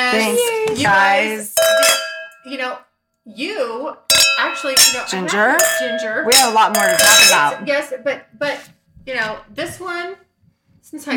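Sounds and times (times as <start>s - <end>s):
speech: 0.1s - 10.2s, 10.8s - 11.1s
glasses clinking in a toast: 1.6s - 2.5s, 4.1s - 7.8s.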